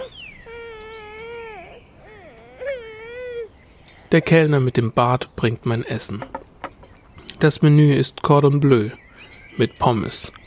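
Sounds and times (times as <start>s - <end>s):
young child crying and screaming in high-pitched wails: 0.0s - 3.6s
speech: 4.1s - 6.4s, 7.4s - 9.0s, 9.6s - 10.4s.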